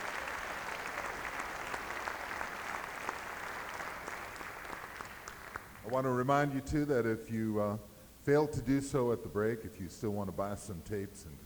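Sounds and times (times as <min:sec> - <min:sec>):
audience applause after concert: 0:00.0 - 0:06.5
speech: 0:05.9 - 0:11.4.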